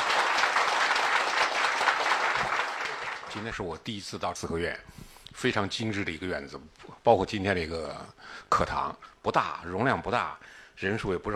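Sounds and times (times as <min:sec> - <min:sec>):
warm audience applause: 0:00.0 - 0:03.4
speech: 0:03.4 - 0:11.3.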